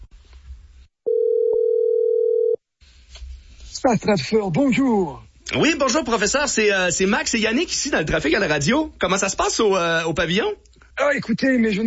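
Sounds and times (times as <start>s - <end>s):
telephone ringing tone on the line: 1.1s - 2.6s
speech: 3.8s - 11.8s.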